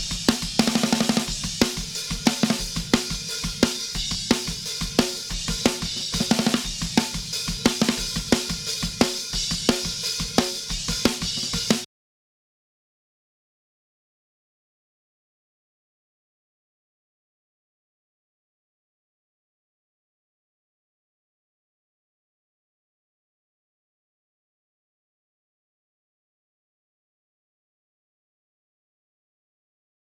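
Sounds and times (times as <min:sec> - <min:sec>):
snare drum: 0:00.0 - 0:11.9.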